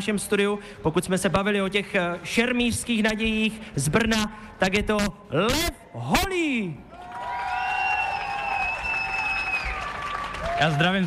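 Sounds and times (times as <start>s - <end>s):
speech: 0.0s - 6.9s, 10.6s - 11.0s
large outdoor crowd applause on a town square: 6.9s - 11.0s.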